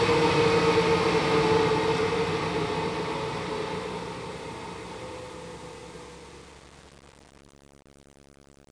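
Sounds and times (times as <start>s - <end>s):
fan: 0.0s - 6.8s.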